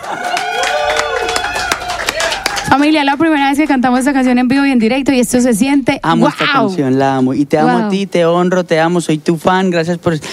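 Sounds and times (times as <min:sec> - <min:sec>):
audience applause: 0:00.0 - 0:03.1
speech: 0:02.7 - 0:10.3.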